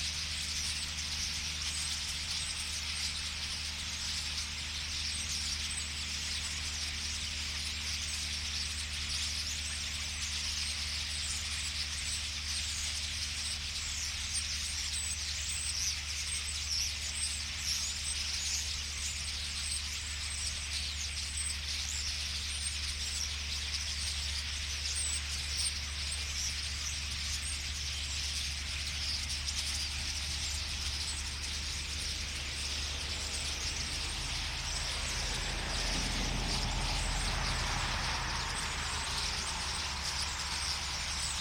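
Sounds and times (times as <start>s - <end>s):
common starling flock chattering: 0.0s - 41.3s
low engine-like hum: 0.0s - 41.3s.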